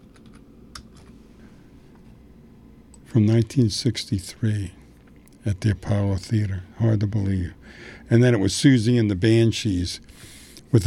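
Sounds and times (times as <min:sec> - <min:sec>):
typing on a computer keyboard: 0:00.0 - 0:01.1
low steady hum: 0:00.0 - 0:10.8
speech: 0:03.1 - 0:04.8, 0:05.4 - 0:10.8.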